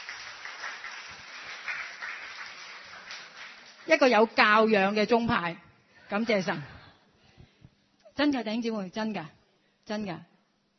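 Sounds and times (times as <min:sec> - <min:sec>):
church congregation clapping: 0:00.0 - 0:04.2
speech: 0:03.9 - 0:06.8, 0:08.2 - 0:10.3.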